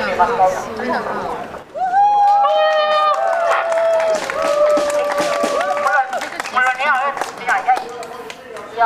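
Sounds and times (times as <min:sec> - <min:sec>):
speech: 0:00.2 - 0:01.5
cheering and whistling: 0:01.7 - 0:06.0
crowd applauding: 0:02.0 - 0:08.7.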